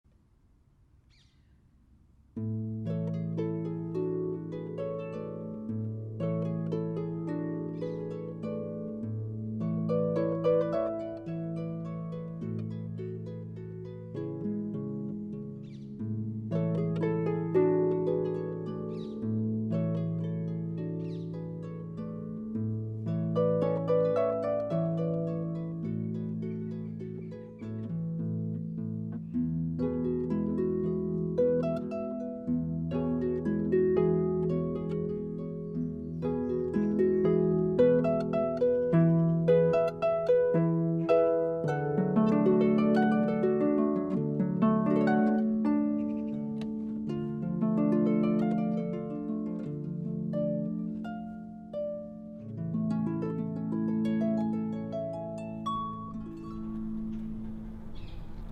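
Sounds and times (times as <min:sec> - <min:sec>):
harp melody: 0:02.3 - 0:58.5.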